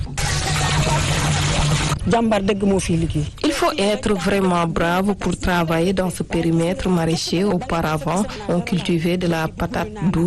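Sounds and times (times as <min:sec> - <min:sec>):
water splashing on vegetable plots in a market garden in Tambacounda: 0:00.2 - 0:02.0
speech: 0:02.1 - 0:10.2.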